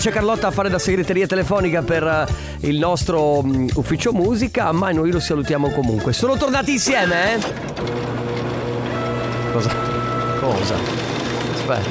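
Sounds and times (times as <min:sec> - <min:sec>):
speech: 0:00.0 - 0:08.2, 0:09.6 - 0:11.0, 0:11.7 - 0:11.8
fax machine printing a page: 0:06.4 - 0:11.8.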